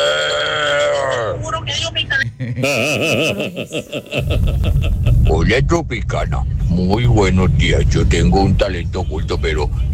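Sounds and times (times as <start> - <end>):
person imitating a bull with the voice: 0.0 - 1.4
laughter: 2.2 - 5.4
speech: 2.4 - 4.9, 5.5 - 9.9.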